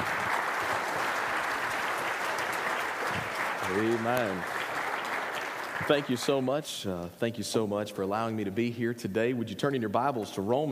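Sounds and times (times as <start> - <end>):
church congregation applause at Kirby Church: 0.0 - 6.8
speech: 3.7 - 4.6, 5.8 - 10.7.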